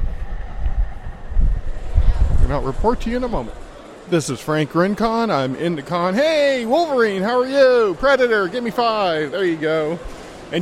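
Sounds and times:
train passing: 0:00.0 - 0:10.6
speech: 0:02.5 - 0:10.6.

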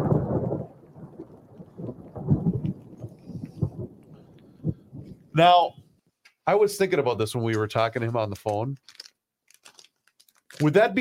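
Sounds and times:
thundersnow, thunder rumbling during snowfall: 0:00.0 - 0:05.9
speech: 0:05.4 - 0:05.8, 0:06.4 - 0:09.0, 0:10.6 - 0:10.9.

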